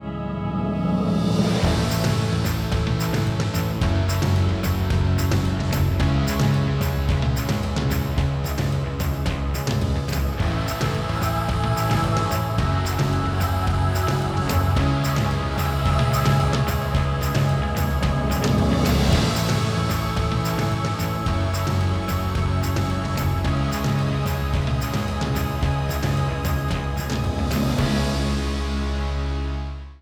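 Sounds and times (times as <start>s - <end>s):
music: 0.0s - 30.0s.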